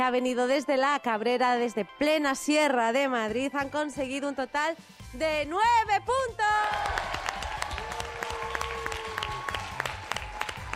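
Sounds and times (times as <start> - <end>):
speech: 0.0 - 7.1
audience applause at a school quiz contest: 6.6 - 10.7.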